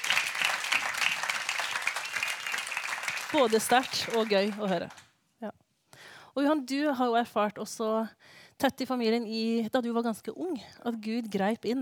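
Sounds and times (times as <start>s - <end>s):
audience applause: 0.0s - 5.0s
speech: 3.3s - 5.5s, 6.4s - 11.8s.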